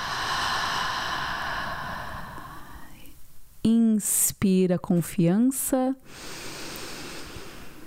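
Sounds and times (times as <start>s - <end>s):
slow deep exhale through the throat during a guided breathing exercise: 0.0s - 3.0s, 6.1s - 7.8s
speech: 3.6s - 6.4s.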